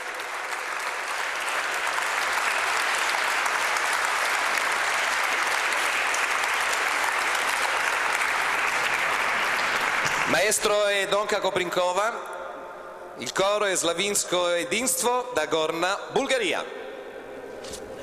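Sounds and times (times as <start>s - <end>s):
audience applause: 0.0s - 11.0s
speech: 10.4s - 12.4s, 13.2s - 16.8s.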